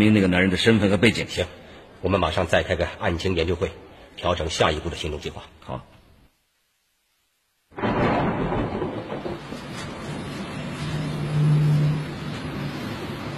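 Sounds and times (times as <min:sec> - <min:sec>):
speech: 0:00.0 - 0:05.9
rain starting: 0:07.7 - 0:13.3
thunder: 0:07.7 - 0:13.3.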